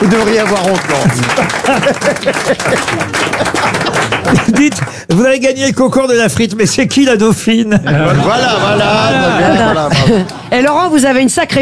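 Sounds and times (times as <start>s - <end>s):
studio audience applause on a television entertainment show: 0.0s - 5.2s
speech: 0.0s - 11.6s
laughter: 0.1s - 4.9s, 7.7s - 10.7s.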